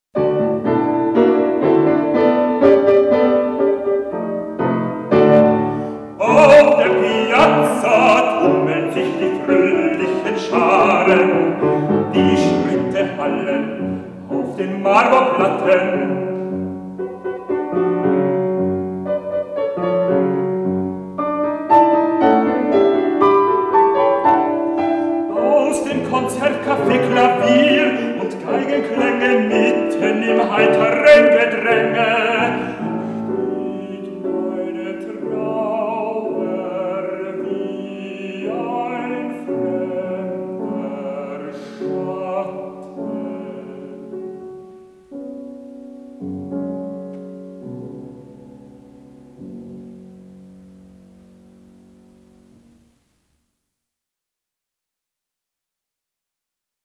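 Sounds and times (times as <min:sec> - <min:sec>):
piano accompaniment: 0:00.1 - 0:53.3
baritone singing songs: 0:00.2 - 0:21.0, 0:21.7 - 0:45.0.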